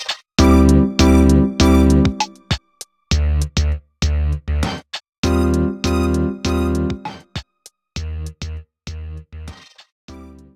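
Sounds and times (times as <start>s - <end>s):
techno music: 0.4s - 3.3s, 5.3s - 7.3s.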